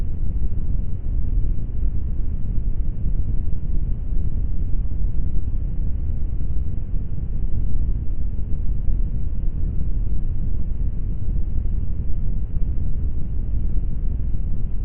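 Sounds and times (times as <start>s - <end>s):
low brown noise: 0.0s - 14.8s.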